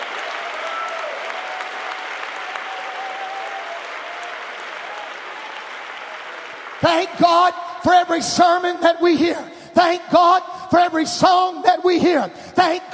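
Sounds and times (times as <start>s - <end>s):
audience clapping hands: 0.0s - 7.6s
speech: 6.8s - 12.9s.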